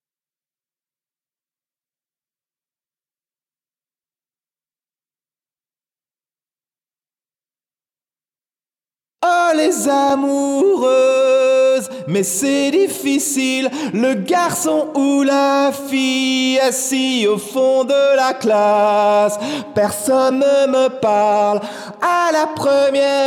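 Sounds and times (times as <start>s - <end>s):
junior a cappella song: 9.2s - 23.2s.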